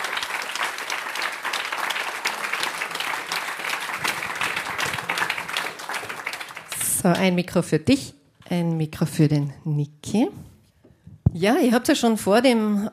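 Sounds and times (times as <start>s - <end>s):
audience applause: 0.0s - 6.9s
speech: 7.0s - 10.5s, 11.4s - 12.9s.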